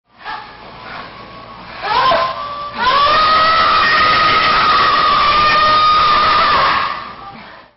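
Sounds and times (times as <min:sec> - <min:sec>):
woman screaming: 0:01.8 - 0:07.1.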